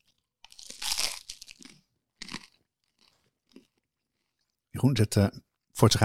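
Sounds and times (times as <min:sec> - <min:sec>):
crunching bite into a cheese and onion sourdough toastie: 0:00.0 - 0:03.8
chewing crunches of a sourdough toastie: 0:00.0 - 0:04.6
speech: 0:04.8 - 0:06.0.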